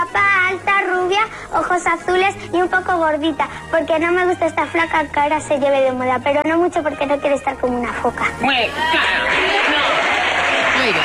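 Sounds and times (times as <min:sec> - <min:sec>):
speech: 0:00.1 - 0:09.7, 0:10.8 - 0:11.0
crowd of adults applauding: 0:08.7 - 0:11.0.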